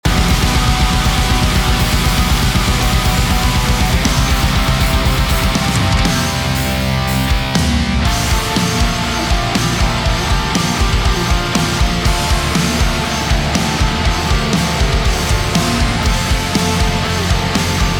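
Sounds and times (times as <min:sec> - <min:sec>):
metal guitars: 0:00.0 - 0:17.9.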